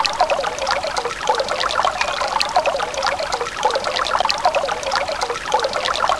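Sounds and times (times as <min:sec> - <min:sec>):
water: 0:00.0 - 0:06.1.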